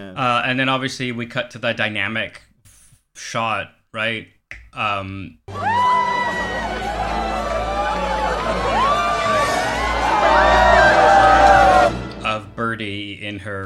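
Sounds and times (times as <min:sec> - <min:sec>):
speech: 0:00.1 - 0:02.5, 0:03.2 - 0:05.9, 0:12.8 - 0:13.6
crowd cheering: 0:05.5 - 0:12.2.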